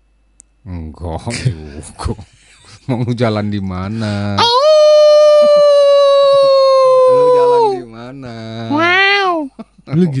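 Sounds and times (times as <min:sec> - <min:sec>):
speech: 0:00.6 - 0:04.6, 0:08.1 - 0:10.1
person imitating a wolf howl: 0:04.4 - 0:07.9, 0:08.7 - 0:09.5.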